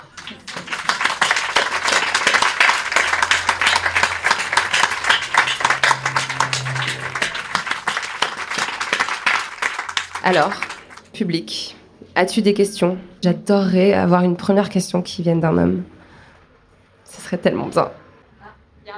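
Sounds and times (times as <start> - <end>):
audience applause: 0.0 - 11.0
speech: 10.3 - 15.9, 17.3 - 18.0.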